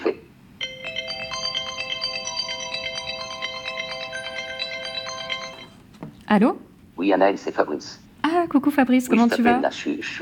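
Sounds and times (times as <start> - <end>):
phone ringing with electronic melody: 0.6 - 5.8
speech: 6.3 - 10.2.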